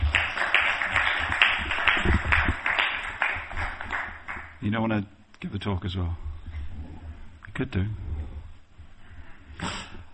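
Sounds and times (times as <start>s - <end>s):
audience applause: 0.0s - 4.6s
speech: 4.7s - 6.3s, 7.6s - 8.0s.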